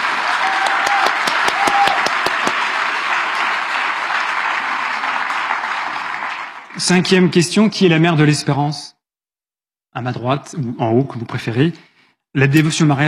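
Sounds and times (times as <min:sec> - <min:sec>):
audience applauding: 0:00.0 - 0:07.4
speech: 0:06.8 - 0:09.0, 0:10.0 - 0:13.0.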